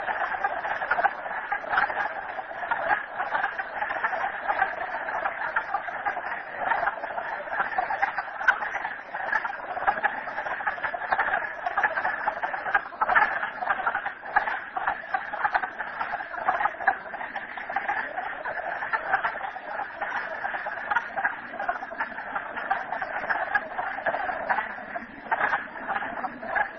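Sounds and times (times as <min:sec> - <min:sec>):
many frogs croaking together: 0:00.0 - 0:26.7.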